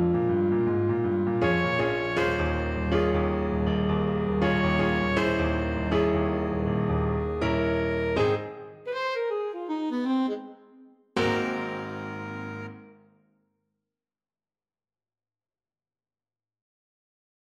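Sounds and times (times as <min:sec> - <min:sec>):
jazzy saxophone melody: 0:00.1 - 0:13.1.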